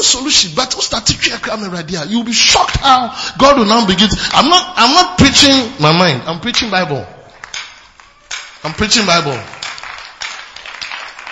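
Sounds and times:
speech: 0.1s - 7.2s, 8.6s - 9.6s
audience clapping: 7.3s - 11.3s.

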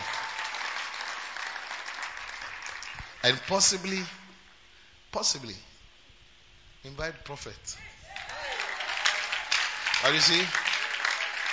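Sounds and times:
audience clapping: 0.0s - 4.0s, 8.1s - 11.5s
speech: 3.2s - 4.2s, 5.1s - 5.7s, 6.8s - 7.9s, 10.0s - 10.7s.

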